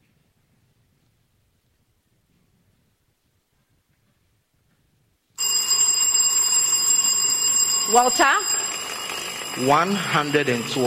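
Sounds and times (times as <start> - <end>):
quiz contestant's answer bell ringing: 5.4 - 10.8
speech: 7.9 - 8.6, 9.6 - 10.8.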